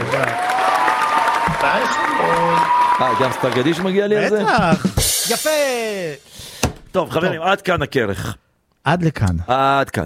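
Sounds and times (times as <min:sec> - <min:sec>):
audience applause: 0:00.0 - 0:04.4
speech: 0:01.7 - 0:10.0.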